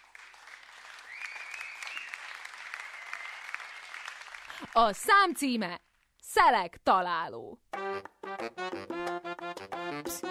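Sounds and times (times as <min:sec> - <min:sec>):
audience applause: 0:00.0 - 0:04.7
speech: 0:04.6 - 0:10.2.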